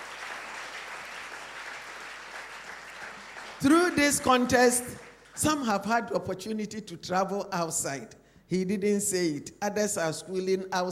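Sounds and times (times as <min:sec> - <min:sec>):
audience clapping: 0:00.0 - 0:05.7
speech: 0:03.6 - 0:10.9.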